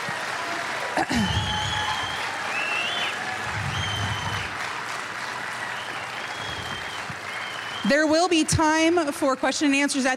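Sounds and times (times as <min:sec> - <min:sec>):
audience round of applause: 0:00.0 - 0:08.9
speech: 0:01.0 - 0:01.5, 0:07.9 - 0:10.1
faint high whistle-like tones: 0:01.4 - 0:04.6, 0:05.7 - 0:08.0.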